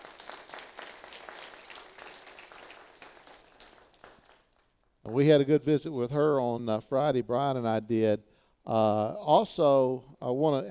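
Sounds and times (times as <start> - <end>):
people clapping: 0.0 - 5.6
speech: 5.1 - 10.6.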